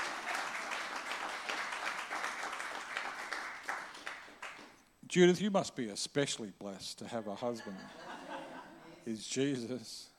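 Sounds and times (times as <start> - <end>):
audience applause: 0.0 - 4.7
speech: 5.1 - 8.1, 9.0 - 10.1
laughter: 7.5 - 9.0.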